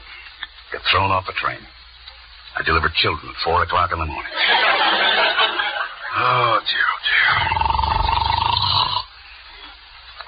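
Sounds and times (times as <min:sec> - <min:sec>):
speech: 0:00.8 - 0:01.8, 0:02.6 - 0:05.6, 0:06.2 - 0:07.8
laughter: 0:04.3 - 0:06.6
man snoring: 0:06.2 - 0:09.1.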